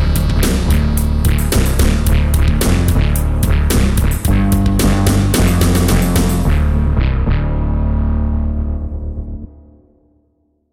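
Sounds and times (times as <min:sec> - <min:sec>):
bass synthesiser: 0:00.0 - 0:10.1.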